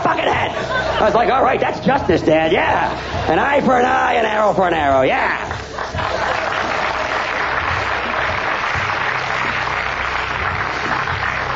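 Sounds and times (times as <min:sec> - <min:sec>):
laughter: 0:00.0 - 0:04.0, 0:05.2 - 0:10.2
speech: 0:01.0 - 0:06.0
audience applause for a comedian: 0:05.6 - 0:11.5.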